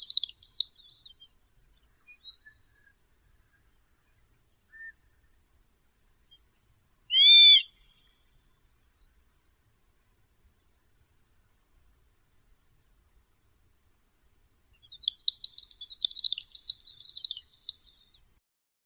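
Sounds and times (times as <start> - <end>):
great snipe Gallinago media: 0.0 - 0.9, 7.1 - 8.0, 15.0 - 18.1.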